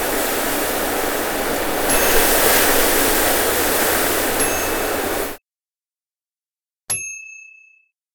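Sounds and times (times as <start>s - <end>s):
hurricane, tornado or tropical storm winds: 0.0s - 5.4s.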